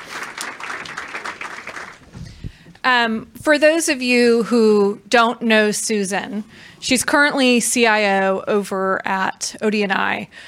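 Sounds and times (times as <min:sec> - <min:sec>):
round of applause: 0:00.0 - 0:02.5
speech: 0:02.9 - 0:10.4.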